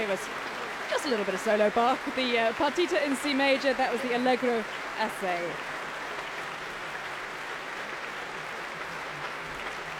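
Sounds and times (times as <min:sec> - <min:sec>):
speech: 0:00.1 - 0:05.8
concert hall audience applause: 0:04.4 - 0:09.9.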